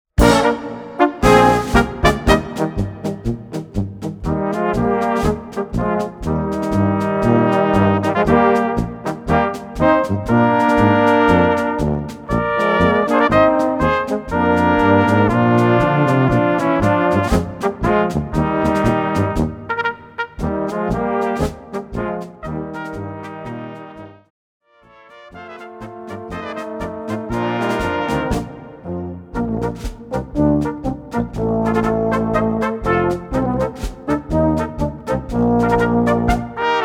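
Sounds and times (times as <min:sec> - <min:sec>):
polka music: 0:00.0 - 0:24.2, 0:25.2 - 0:36.8.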